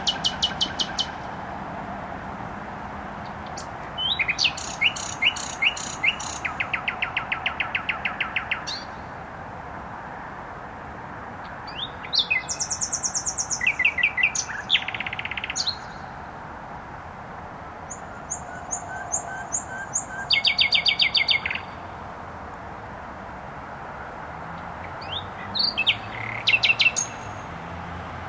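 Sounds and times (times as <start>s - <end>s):
nightingale song with clicks, whistles and trills: 0.0s - 1.4s, 3.2s - 9.1s, 11.4s - 16.3s, 17.9s - 21.9s, 24.8s - 27.5s
constant traffic rumble: 0.0s - 28.2s.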